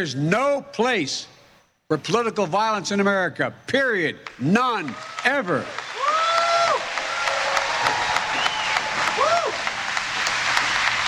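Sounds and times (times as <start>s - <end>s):
speech: 0.0s - 5.9s
large crowd applauding: 4.2s - 11.0s
voices whooping: 5.9s - 9.9s.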